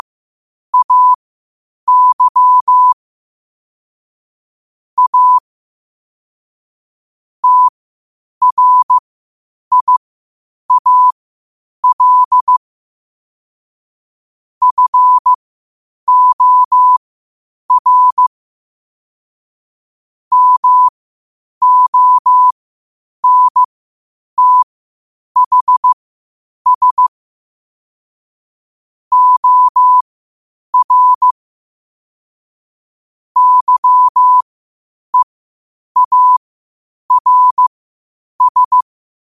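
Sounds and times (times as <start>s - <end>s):
morse code at 5 wpm: 0.8s - 1.2s, 1.9s - 3.0s, 5.0s - 5.4s, 7.4s - 7.7s, 8.4s - 9.0s, 9.7s - 10.0s, 10.7s - 11.2s, 11.8s - 12.6s, 14.6s - 15.3s, 16.1s - 17.0s, 17.7s - 18.3s, 20.3s - 20.9s, 21.6s - 22.5s, 23.2s - 23.7s, 24.4s - 24.7s, 25.4s - 26.0s, 26.7s - 27.2s, 29.1s - 30.0s, 30.8s - 31.4s, 33.4s - 34.4s, 36.0s - 36.4s, 37.1s - 37.7s, 38.4s - 38.9s.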